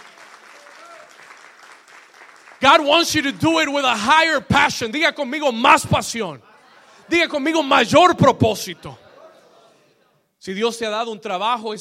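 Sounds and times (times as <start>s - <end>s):
audience applause: 0.0s - 3.3s
speech: 2.6s - 6.5s, 7.1s - 9.0s, 10.4s - 11.7s.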